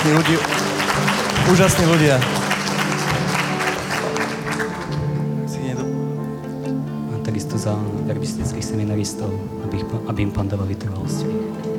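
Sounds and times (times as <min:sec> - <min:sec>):
speech: 0:00.0 - 0:00.7, 0:01.4 - 0:02.4, 0:07.6 - 0:11.7
applause for priests and helpers during a prayer gathering: 0:00.0 - 0:06.8.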